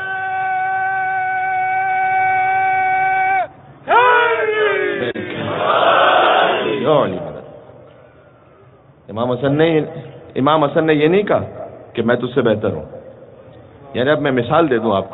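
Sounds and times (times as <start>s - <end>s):
loud massed roar of many voices shouting together: 0.0s - 6.8s
crowd chanting a religious slogan: 4.0s - 6.9s
speech: 9.2s - 13.0s, 13.9s - 15.1s.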